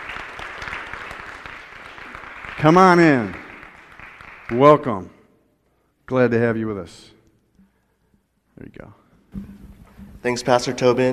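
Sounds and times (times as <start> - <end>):
audience applause: 0.0 - 4.8
speech: 2.6 - 3.4, 4.5 - 5.2, 6.1 - 7.2, 8.6 - 9.6, 10.2 - 11.1.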